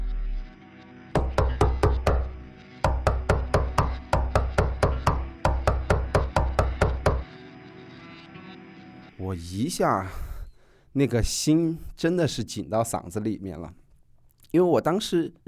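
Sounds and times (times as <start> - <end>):
knocking on a wooden door: 1.2 - 7.3
speech: 9.2 - 10.3, 10.9 - 13.8, 14.5 - 15.4.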